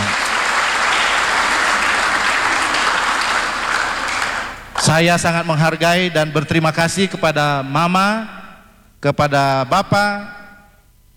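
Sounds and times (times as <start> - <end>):
audience applause: 0.0 - 4.9
speech: 4.9 - 8.4, 9.0 - 10.4.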